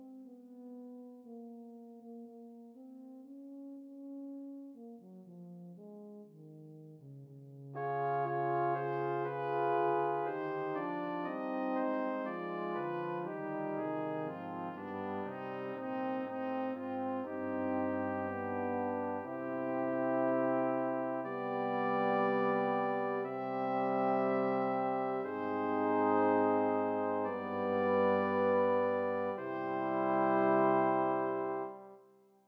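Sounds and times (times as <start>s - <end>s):
requiem for four voices or instruments: 7.8s - 32.0s.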